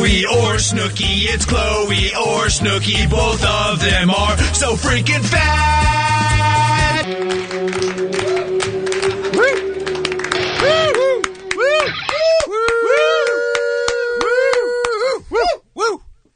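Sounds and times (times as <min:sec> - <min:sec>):
speech: 0:00.2 - 0:09.2
crowd cheering and clapping: 0:05.8 - 0:15.0.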